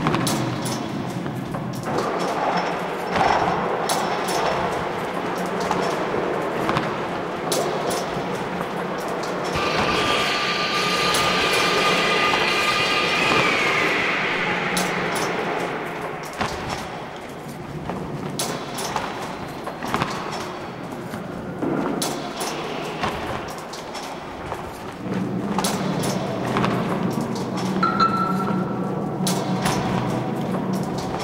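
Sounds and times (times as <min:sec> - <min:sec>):
construction site ambience: 0:00.0 - 0:31.2.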